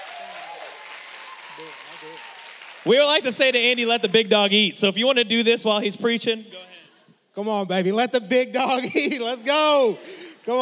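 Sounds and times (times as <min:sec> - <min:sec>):
audience slow clap applause: 0:00.0 - 0:03.2
speech: 0:01.6 - 0:06.7, 0:07.4 - 0:10.5.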